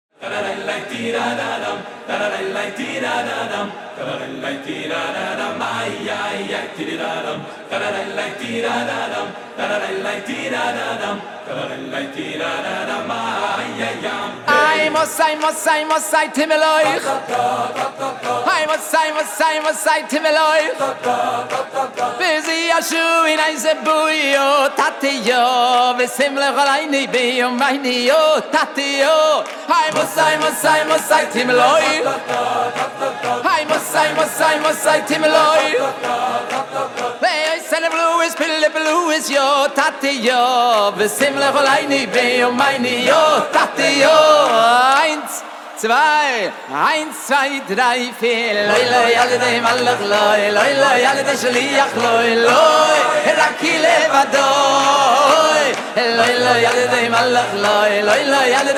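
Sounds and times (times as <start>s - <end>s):
a cappella singing: 0.1s - 58.7s.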